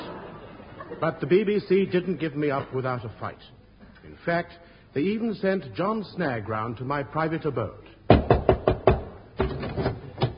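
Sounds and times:
laughter: 0:00.0 - 0:01.4
speech: 0:00.9 - 0:08.2
knocking on the door of a house: 0:08.1 - 0:09.5.

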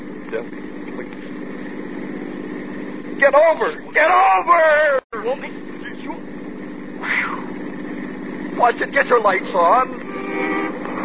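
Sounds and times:
truck approaching: 0:00.0 - 0:11.0
speech: 0:00.3 - 0:00.8, 0:03.2 - 0:06.2, 0:08.6 - 0:10.0.

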